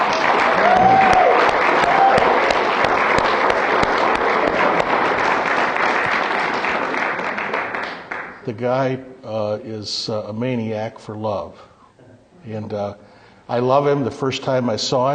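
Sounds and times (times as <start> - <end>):
big round of applause: 0.0 - 8.5
speech: 8.5 - 11.7, 12.4 - 15.1.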